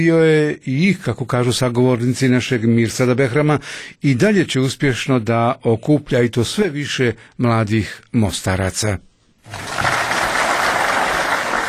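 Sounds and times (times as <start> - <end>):
speech: 0.0 - 10.0
audience applause at a youth performance: 9.5 - 11.6.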